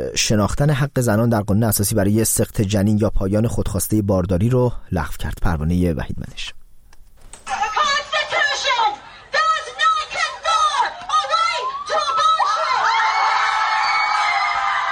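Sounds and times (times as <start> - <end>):
speech: 0.0 - 6.6
crowd of protesters cheering outside the US Supreme Court: 7.5 - 14.9
protesters chanting and shouting outside the US Supreme Court: 7.7 - 13.5.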